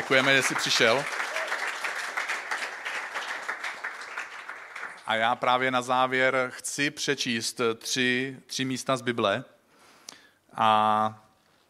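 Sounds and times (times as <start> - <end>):
audience applause: 0.0 - 5.1
speech: 0.1 - 1.2, 5.1 - 9.6, 10.6 - 11.2.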